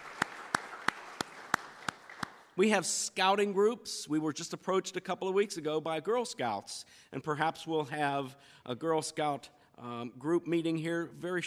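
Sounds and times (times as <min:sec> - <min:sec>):
round of applause: 0:00.0 - 0:02.6
speech: 0:02.6 - 0:11.4.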